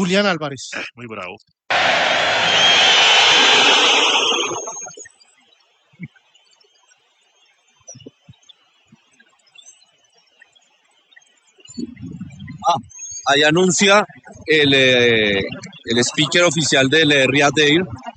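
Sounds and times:
speech: 0.0 - 5.1, 11.8 - 18.1
stadium crowd booing a player: 1.7 - 4.8
shrill whistles from stadium fans: 1.7 - 5.1.

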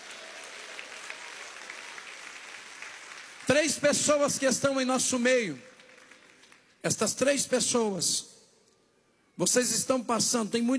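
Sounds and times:
audience clapping hands: 0.0 - 6.8
speech: 3.5 - 5.7, 6.8 - 8.3, 9.4 - 10.7.

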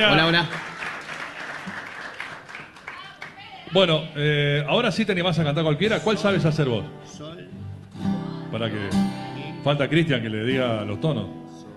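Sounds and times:
speech: 0.0 - 0.7, 3.7 - 11.4
audience applause: 0.0 - 3.6.

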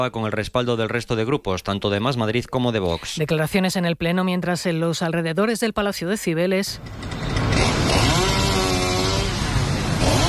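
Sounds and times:
speech: 0.0 - 7.2
chainsaw cutting trees: 6.8 - 10.2.

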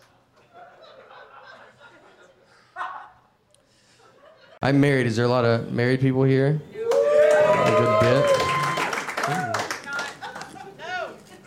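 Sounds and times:
laughter: 0.1 - 4.6, 7.6 - 11.4
speech: 4.6 - 6.7, 7.6 - 8.4
scattered uneven audience clapping: 6.9 - 10.7.

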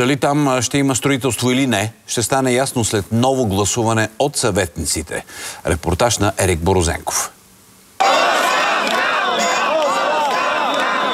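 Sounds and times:
speech: 0.0 - 7.4
protest crowd chanting slogans: 8.0 - 11.1.

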